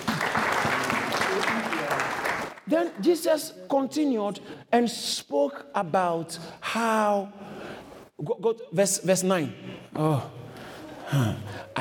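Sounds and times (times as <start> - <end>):
audience clapping: 0.0 - 3.3
speech: 2.7 - 7.5, 8.2 - 10.4, 11.1 - 11.7.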